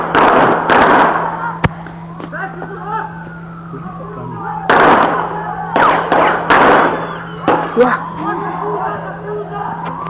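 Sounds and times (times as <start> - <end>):
gunshots in a played video: 0.0 - 1.8, 4.7 - 7.9.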